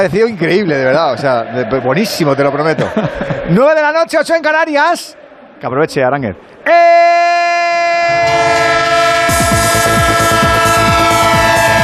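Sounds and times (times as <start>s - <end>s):
speech: 0.0s - 7.2s
laughter: 2.2s - 3.8s
train horn sounding a multi-tone chord: 8.2s - 11.8s.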